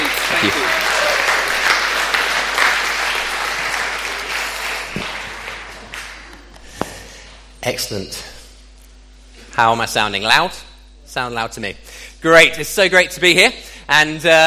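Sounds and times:
crowd applauding: 0.0s - 6.7s
speech: 0.4s - 0.8s, 7.7s - 8.3s, 9.6s - 14.4s.

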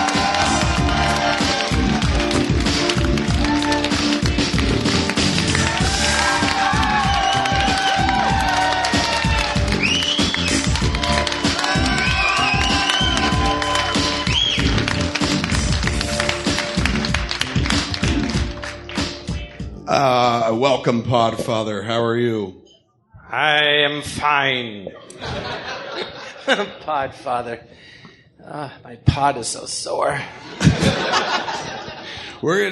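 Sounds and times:
studio audience clapping for the opening of a comedy show: 0.0s - 19.5s
studio audience shouts and whistles: 5.7s - 14.8s
speech: 20.8s - 22.6s, 23.3s - 27.8s, 28.4s - 32.6s
laughter: 24.9s - 27.1s, 30.4s - 32.3s.

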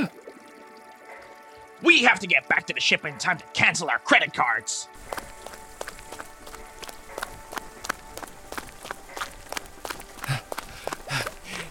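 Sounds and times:
speech: 1.8s - 5.3s
running footsteps: 5.0s - 11.6s.

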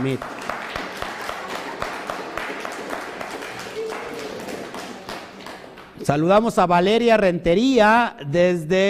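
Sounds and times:
speech: 0.0s - 0.4s, 6.1s - 8.8s
applause: 0.0s - 6.1s.

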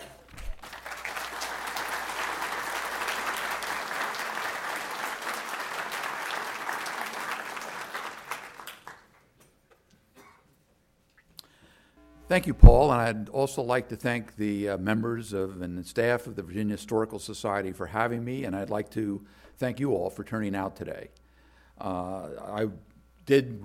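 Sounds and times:
audience applause welcoming a speaker at a history talk at the Virginia Historical Society: 0.0s - 9.2s
speech: 12.3s - 21.2s, 21.8s - 23.6s.

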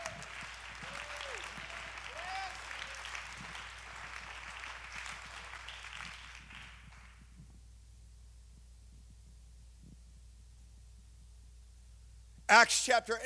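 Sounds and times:
audience clapping hands: 0.0s - 7.4s
speech: 12.5s - 13.2s.

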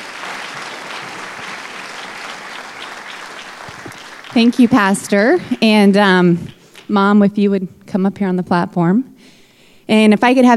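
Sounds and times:
church congregation applause welcoming a staff member: 0.0s - 5.8s
speech: 4.4s - 9.1s, 9.9s - 10.5s.

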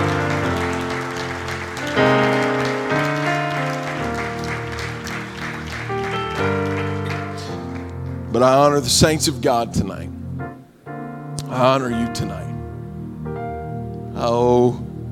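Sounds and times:
audience clapping hands: 0.0s - 8.4s
speech: 8.4s - 10.2s, 11.6s - 12.4s, 14.2s - 14.8s.

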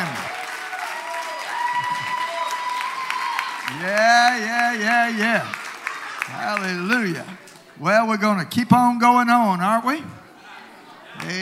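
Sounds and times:
audience applause: 0.0s - 7.5s
speech: 3.8s - 5.6s, 6.3s - 10.2s, 11.2s - 11.4s.

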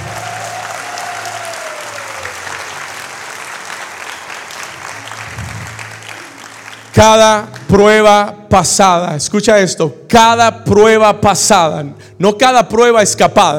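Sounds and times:
audience applause: 0.0s - 7.7s
speech: 7.0s - 13.5s.

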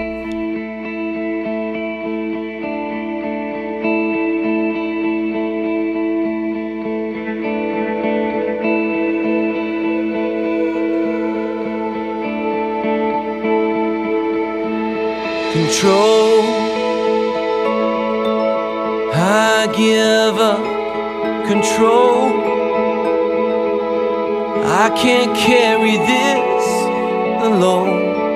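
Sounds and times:
worship song played in full: 0.0s - 28.3s.

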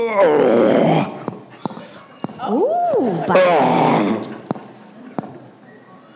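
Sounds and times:
person imitating a zombie walker's groan: 0.0s - 1.2s, 3.3s - 4.3s
speech: 0.0s - 1.2s, 2.5s - 4.2s.

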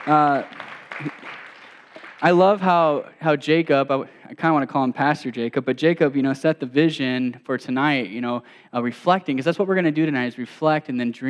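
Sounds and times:
audience applause: 0.0s - 2.4s
speech: 0.1s - 1.4s, 2.2s - 11.2s.

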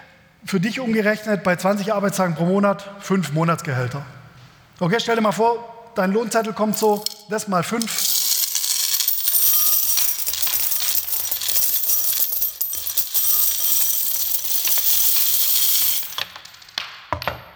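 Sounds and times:
speech: 0.4s - 4.2s, 4.8s - 8.1s
coins pouring and clattering: 6.7s - 16.8s.

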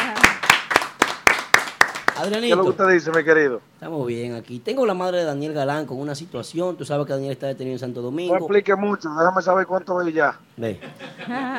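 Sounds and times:
sharp hand claps: 0.0s - 3.2s
speech: 2.2s - 11.5s
laughter: 10.7s - 11.5s.

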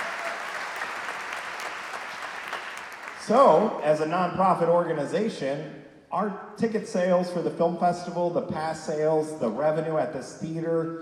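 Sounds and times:
audience applause: 0.0s - 3.8s
speech: 3.2s - 10.9s.

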